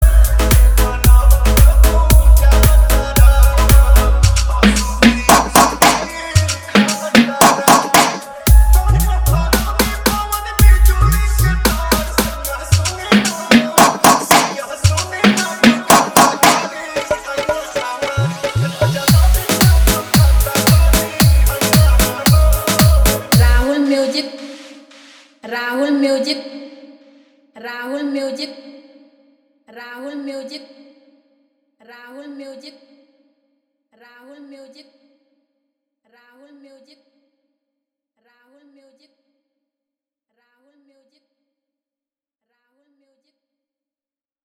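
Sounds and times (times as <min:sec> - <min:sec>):
Bhojpuri DJ remix song with EDM drop: 0:00.0 - 0:25.3.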